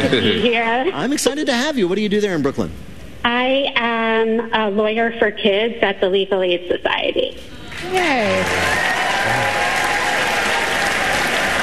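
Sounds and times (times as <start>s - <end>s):
speech: 0.0s - 9.4s
live audience applause: 7.7s - 11.6s.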